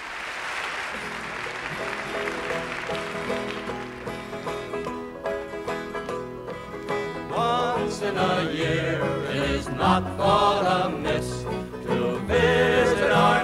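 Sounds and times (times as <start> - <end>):
audience applause in a concert hall: 0.0 - 5.3
speech: 8.0 - 13.4.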